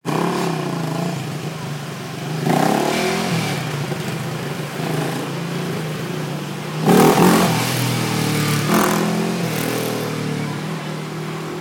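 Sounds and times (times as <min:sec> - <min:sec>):
motorbike: 0:00.0 - 0:11.5.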